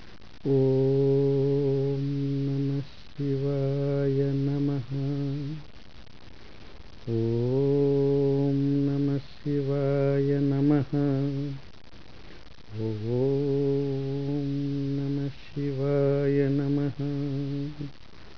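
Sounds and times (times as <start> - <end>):
mantra chanting: 0.4 - 5.6, 7.0 - 11.6, 12.7 - 17.9.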